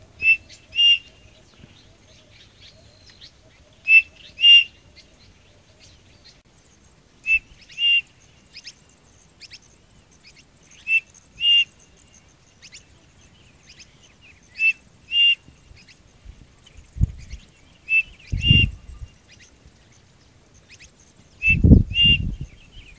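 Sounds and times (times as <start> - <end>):
bird whistling calls: 0.1 - 5.1, 7.2 - 8.8, 10.2 - 12.9, 13.7 - 16.0, 17.2 - 19.6, 20.6 - 22.9.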